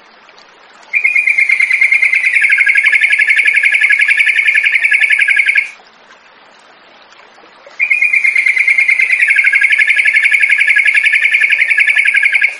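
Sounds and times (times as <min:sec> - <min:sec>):
yellow-vented bulbul song of short sharp chirps: 0:01.0 - 0:05.8, 0:07.8 - 0:12.5.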